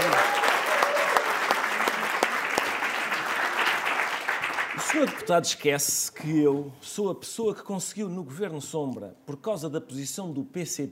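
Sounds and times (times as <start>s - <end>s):
round of applause: 0.0s - 5.3s
speech: 4.9s - 10.9s.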